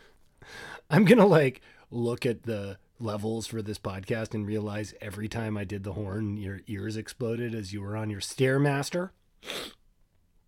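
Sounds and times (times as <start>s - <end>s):
speech: 0.4s - 9.8s
person sniffing: 9.4s - 9.8s.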